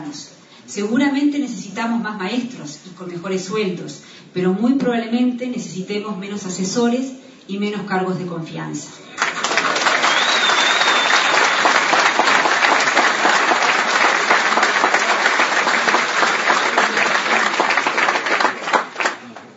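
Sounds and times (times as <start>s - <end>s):
speech: 0.1s - 9.1s
crowd applause: 9.2s - 19.5s.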